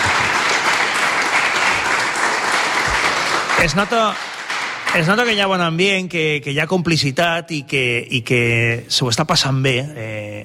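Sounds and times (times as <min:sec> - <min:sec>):
audience applause: 0:00.0 - 0:05.3
speech: 0:03.6 - 0:04.3, 0:04.9 - 0:10.4.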